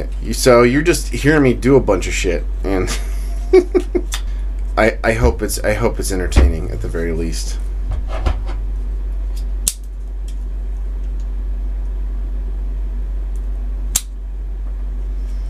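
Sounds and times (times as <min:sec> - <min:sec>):
speech: 0:00.0 - 0:04.2, 0:04.8 - 0:08.3
low steady hum: 0:00.0 - 0:15.4
laughter: 0:02.8 - 0:04.2
cigar cutter snipping a cigar: 0:09.4 - 0:09.9, 0:13.3 - 0:14.2.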